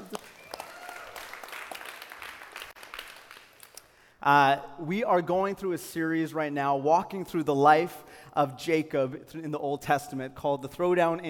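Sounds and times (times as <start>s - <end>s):
audience applause: 0.0s - 3.6s
speech: 4.2s - 11.2s.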